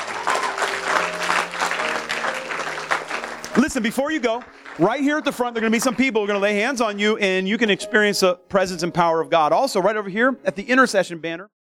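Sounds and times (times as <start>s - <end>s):
crowd applauding: 0.0s - 6.7s
speech: 3.6s - 11.6s.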